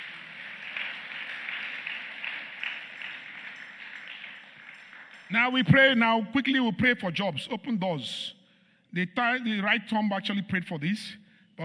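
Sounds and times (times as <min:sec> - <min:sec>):
audience clapping: 0:00.0 - 0:06.6
speech: 0:05.3 - 0:11.6.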